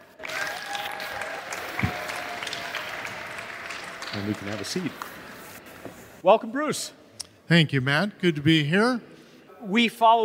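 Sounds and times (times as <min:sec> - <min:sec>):
audience applause: 0:00.0 - 0:05.6
speech: 0:04.2 - 0:05.2, 0:06.2 - 0:10.2.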